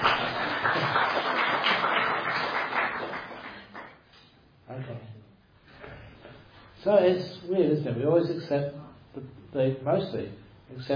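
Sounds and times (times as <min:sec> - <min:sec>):
audience applause: 0:00.0 - 0:04.0
speech: 0:06.8 - 0:10.9.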